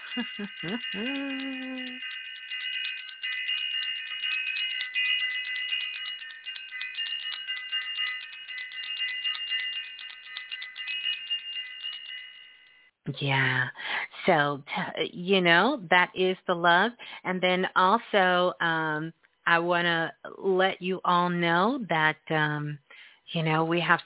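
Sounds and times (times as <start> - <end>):
bell ringing: 0.0 - 12.9
speech: 0.2 - 2.2, 13.1 - 24.0.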